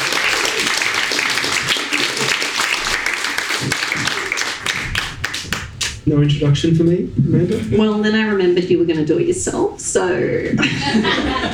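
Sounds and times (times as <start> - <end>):
audience applause: 0.0 - 5.9
speech: 6.1 - 11.5
laughter: 10.5 - 11.5.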